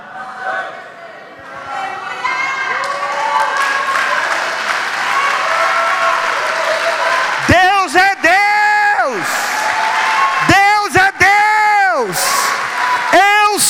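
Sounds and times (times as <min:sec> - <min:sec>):
cheering and shouting voices: 0:00.0 - 0:13.6
crowd applause: 0:02.6 - 0:13.6.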